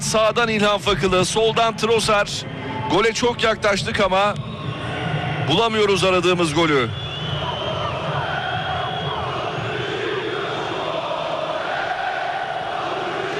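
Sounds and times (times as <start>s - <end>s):
speech: 0.1s - 4.5s, 5.5s - 7.0s
Beşiktaş football fans chanting at the Rhein-Neckar Arena in Sinsheim, Germany: 7.4s - 13.3s.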